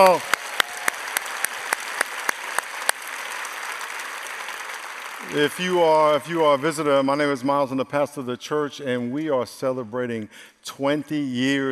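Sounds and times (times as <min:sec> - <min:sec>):
speech: 0:00.0 - 0:00.3, 0:05.3 - 0:11.7
audience applauding: 0:00.0 - 0:07.0.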